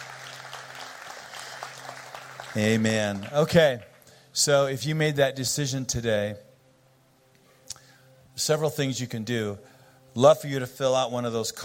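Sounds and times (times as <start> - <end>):
church congregation round of applause: 0.0 - 4.4
speech: 2.6 - 6.5, 8.4 - 11.6.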